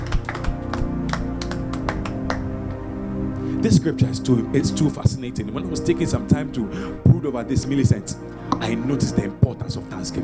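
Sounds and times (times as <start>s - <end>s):
audience clapping: 0.0s - 2.9s
speech: 3.6s - 10.2s.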